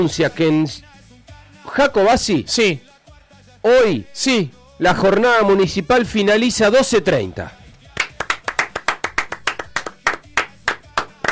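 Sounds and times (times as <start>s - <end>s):
speech: 0.0s - 0.9s, 1.6s - 2.9s, 3.6s - 7.6s
hand clapping: 7.7s - 11.3s.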